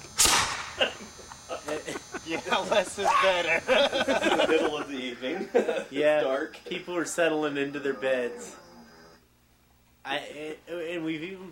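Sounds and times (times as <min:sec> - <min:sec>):
hairspray-fuelled cannon firing: 0:00.2 - 0:00.8
laughter: 0:00.7 - 0:08.6
speech: 0:02.3 - 0:08.6, 0:10.0 - 0:11.5.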